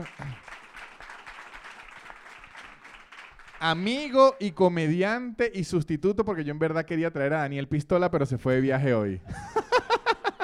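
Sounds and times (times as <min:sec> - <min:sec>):
audience applause: 0:00.0 - 0:04.1
speech: 0:03.6 - 0:09.6
laughter: 0:09.2 - 0:10.4.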